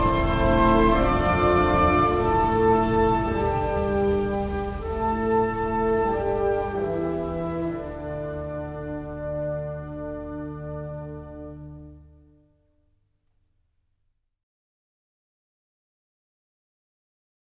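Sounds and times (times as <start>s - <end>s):
national anthem: 0.0s - 12.5s.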